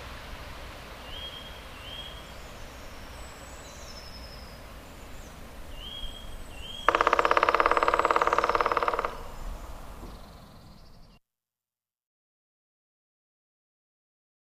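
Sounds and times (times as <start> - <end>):
black woodpecker: 5.8 - 10.8.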